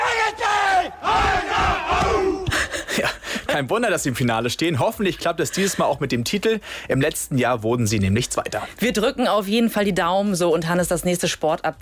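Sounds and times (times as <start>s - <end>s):
Rostock goalball team shouting in unison before a game: 0.0s - 2.5s
speech: 3.6s - 11.7s.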